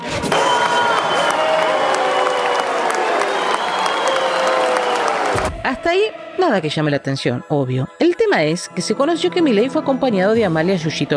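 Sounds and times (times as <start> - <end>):
applause from a large opera audience: 0.2 - 5.6
people shouting: 0.2 - 5.6
speech: 5.8 - 11.1.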